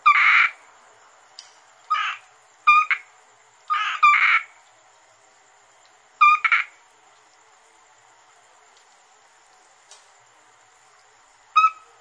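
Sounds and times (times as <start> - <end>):
Asian grass frog Rana limnocharis croaking in short raspy bursts: 0.0 - 0.6, 1.9 - 3.1, 3.7 - 4.6, 6.2 - 6.8, 11.5 - 11.9.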